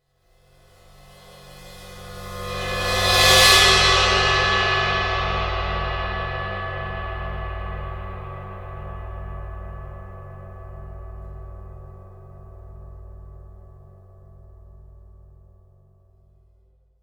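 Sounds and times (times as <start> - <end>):
cymbal: 0.3 - 13.2.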